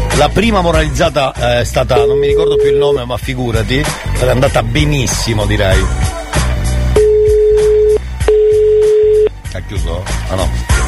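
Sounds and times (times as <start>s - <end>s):
speech: 0.2s - 6.2s, 9.5s - 10.8s
telephone ringback tones: 7.0s - 9.3s.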